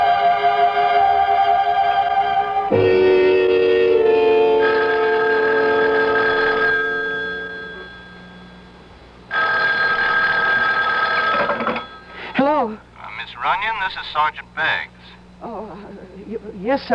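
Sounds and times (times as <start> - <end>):
short wavering pitched sound: 0.0 - 8.8
telephone bell ringing: 2.7 - 8.6, 9.3 - 12.2
speech: 13.8 - 16.9.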